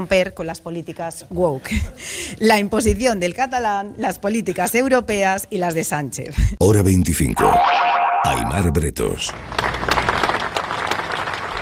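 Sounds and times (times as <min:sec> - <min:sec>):
speech: 0:00.0 - 0:09.8
crowd applauding at a rally in Bilbao: 0:09.2 - 0:11.6.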